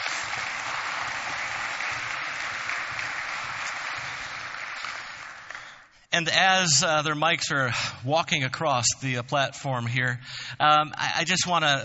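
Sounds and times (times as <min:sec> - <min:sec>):
church congregation clapping during a morning service: 0:00.0 - 0:05.9
speech: 0:06.1 - 0:11.8.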